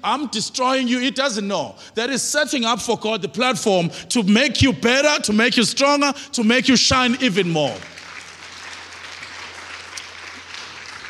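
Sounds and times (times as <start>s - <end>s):
speech: 0.0s - 7.9s
audience clapping in Kloof: 7.0s - 11.0s.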